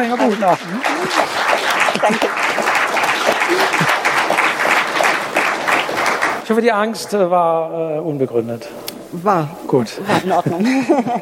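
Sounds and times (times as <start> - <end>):
speech: 0.0 - 2.8, 3.5 - 4.0, 6.5 - 11.2
laughter: 0.0 - 5.3, 10.0 - 11.2
audience applause: 0.0 - 6.4.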